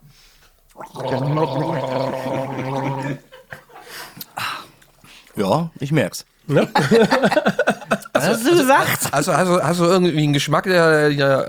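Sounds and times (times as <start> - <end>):
people gargling an alcoholic drink: 0.8 - 4.7, 6.5 - 9.2
speech: 1.0 - 3.3, 5.4 - 11.4
people laughing: 2.4 - 4.2, 6.5 - 9.6.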